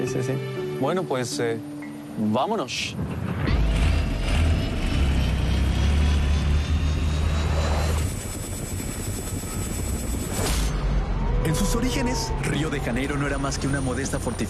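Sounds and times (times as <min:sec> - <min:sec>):
speech: 0:00.0 - 0:03.4, 0:11.5 - 0:14.4
helicopter flying: 0:03.4 - 0:14.4
high whining tone: 0:03.4 - 0:14.4.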